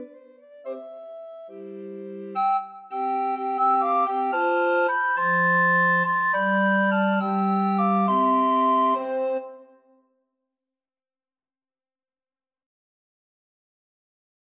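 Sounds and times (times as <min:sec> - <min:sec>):
recorder quartet: 0:00.0 - 0:09.7.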